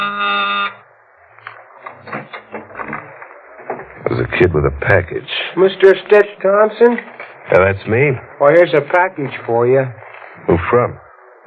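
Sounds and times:
electric door buzzer: 0.0 - 0.8
speech: 4.4 - 11.0.

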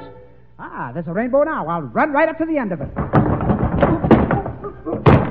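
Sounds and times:
speech: 0.9 - 3.2, 3.8 - 4.1
dull knocking thumps of someone running into a pot: 2.9 - 5.2.

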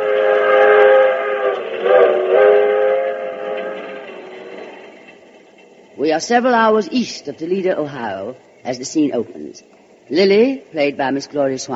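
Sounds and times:
passenger train running on tracks: 0.0 - 11.7
speech: 6.0 - 11.7.

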